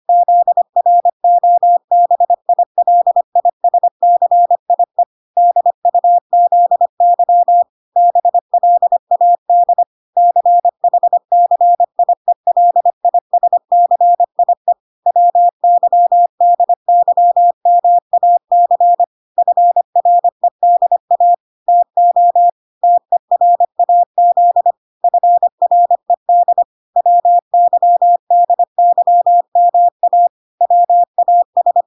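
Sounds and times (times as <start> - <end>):
morse code beeps at 25 words per minute: 0.1 - 31.8.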